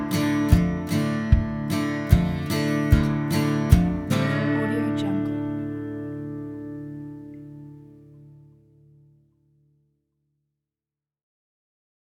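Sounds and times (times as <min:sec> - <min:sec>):
southern acoustic music: 0:00.0 - 0:09.2.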